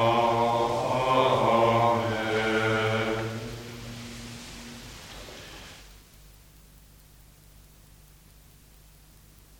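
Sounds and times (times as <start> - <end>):
monks singing at night prayer: 0.0 - 5.5.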